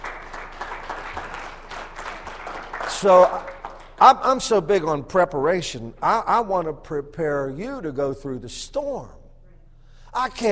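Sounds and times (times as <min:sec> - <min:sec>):
audience clapping hands: 0:00.0 - 0:04.5
speech: 0:03.0 - 0:09.2, 0:10.2 - 0:10.5.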